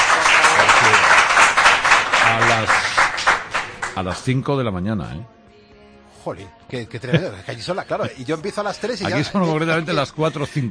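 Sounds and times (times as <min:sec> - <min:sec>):
audience applause: 0:00.0 - 0:04.0
speech: 0:04.0 - 0:05.4, 0:06.2 - 0:10.6.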